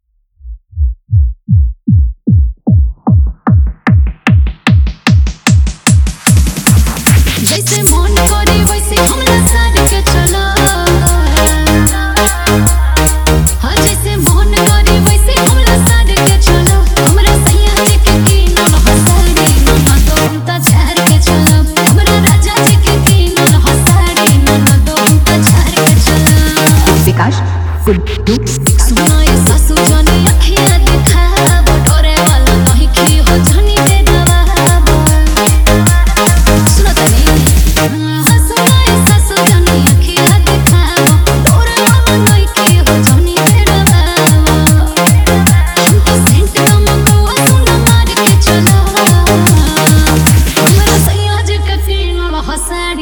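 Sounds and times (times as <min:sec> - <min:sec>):
electro Bhojpuri DJ song remix drop: 0:01.5 - 0:52.9.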